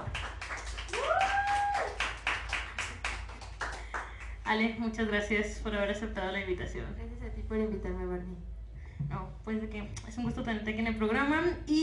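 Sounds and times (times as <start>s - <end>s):
crowd applauding: 0.0s - 4.3s
speech: 4.5s - 11.8s.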